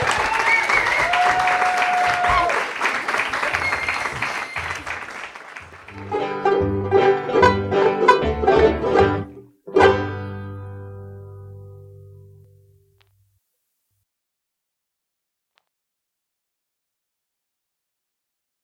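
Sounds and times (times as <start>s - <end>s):
applause: 0.0s - 6.2s
bright plucked musical tune: 5.9s - 12.4s.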